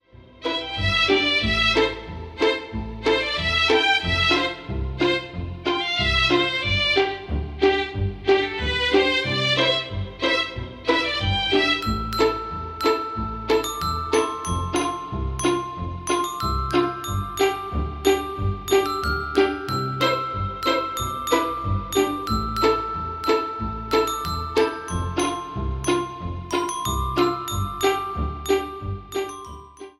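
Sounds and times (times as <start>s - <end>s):
Christmas song: 0.1s - 29.9s.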